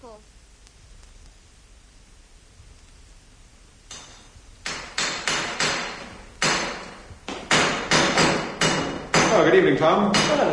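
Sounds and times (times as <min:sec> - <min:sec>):
hammer striking metal in a car repair garage: 0:03.9 - 0:10.5
speech: 0:09.4 - 0:10.5.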